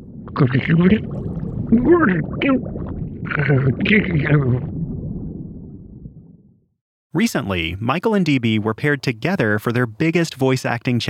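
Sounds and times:
speech: 0:00.4 - 0:04.8, 0:07.1 - 0:11.0
gurgling underwater creature voice made with Jell-O: 0:01.7 - 0:02.7, 0:03.3 - 0:04.7.

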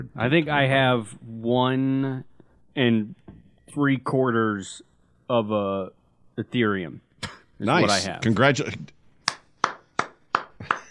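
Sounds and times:
speech: 0:00.0 - 0:09.0
golf clap: 0:09.3 - 0:10.9.

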